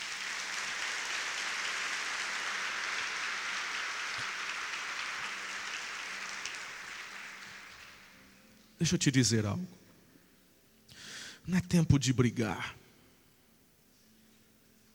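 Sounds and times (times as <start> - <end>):
audience applauding: 0.0 - 8.2
speech: 8.8 - 9.8, 11.5 - 12.8.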